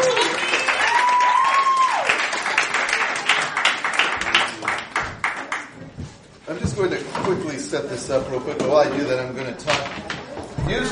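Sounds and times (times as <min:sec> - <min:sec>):
high whistle or whoop: 0:00.0 - 0:02.1
audience applauding and cheering at a show: 0:00.0 - 0:05.7
speech: 0:07.7 - 0:10.9.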